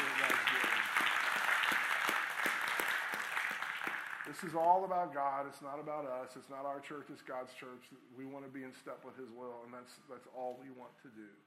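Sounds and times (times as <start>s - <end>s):
church congregation applauding: 0.0s - 4.7s
speech: 4.4s - 11.4s.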